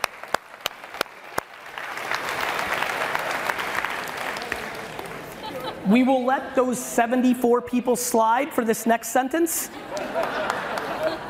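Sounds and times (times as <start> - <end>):
audience clapping: 0.0 - 5.7, 9.9 - 11.2
laughter: 5.0 - 6.3, 9.7 - 11.2
speech: 5.8 - 10.3.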